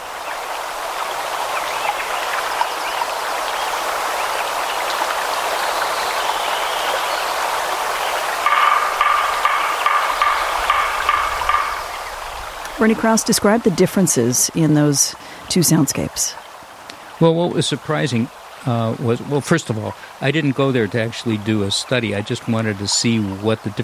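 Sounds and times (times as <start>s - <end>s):
forest stream: 0.0s - 23.8s
woodpecker: 8.0s - 12.8s
speech: 12.8s - 16.4s, 17.2s - 23.8s.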